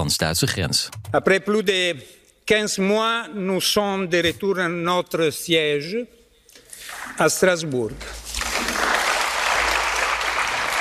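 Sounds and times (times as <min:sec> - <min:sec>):
speech: 0:00.0 - 0:06.2, 0:06.8 - 0:08.7
sustained applause from a large crowd in a parliament chamber: 0:08.3 - 0:10.7.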